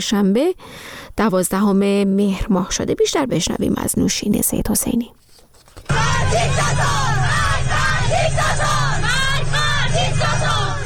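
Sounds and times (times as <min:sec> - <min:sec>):
speech: 0:00.0 - 0:05.2, 0:05.9 - 0:07.2
schoolgirls who removed their hijabs chanting slogans: 0:05.9 - 0:10.8.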